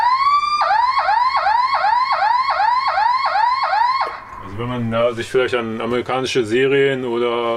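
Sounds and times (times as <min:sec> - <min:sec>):
emergency vehicle siren: 0:00.0 - 0:04.7
speech: 0:04.6 - 0:07.5.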